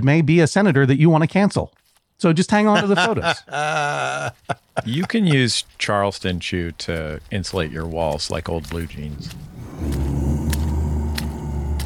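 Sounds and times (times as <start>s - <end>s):
speech: 0.0s - 10.2s
slow soft squelching footsteps: 1.7s - 2.2s, 2.8s - 11.8s
laughter: 2.6s - 5.7s
heavy continuous low rumble: 8.6s - 11.8s
faint droning groan: 8.7s - 11.8s.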